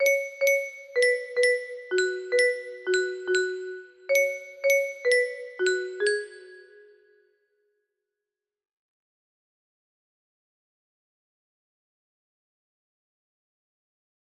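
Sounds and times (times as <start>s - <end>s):
music box: 0.0s - 7.1s.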